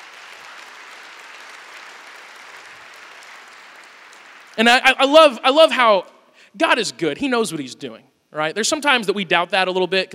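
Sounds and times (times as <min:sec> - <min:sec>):
audience clapping: 0:00.0 - 0:04.9
speech: 0:04.6 - 0:10.1.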